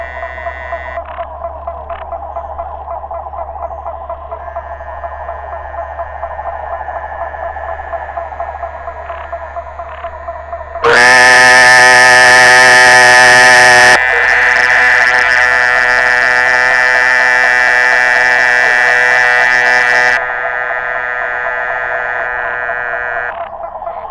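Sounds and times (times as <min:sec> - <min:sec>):
Muller's termite frog Dermatonotus muelleri calling: 0:00.0 - 0:01.3, 0:04.3 - 0:23.5.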